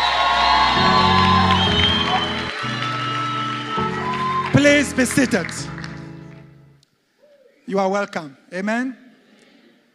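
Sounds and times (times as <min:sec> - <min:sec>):
church congregation shouting, whooping and cheering praise: 0:00.0 - 0:05.6
speech: 0:04.8 - 0:05.8, 0:07.7 - 0:09.0.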